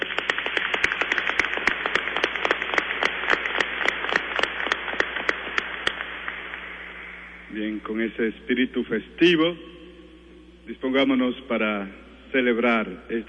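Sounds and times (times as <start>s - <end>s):
loud applause from audience: 0.0s - 6.8s
speech: 7.8s - 9.7s, 10.7s - 13.2s.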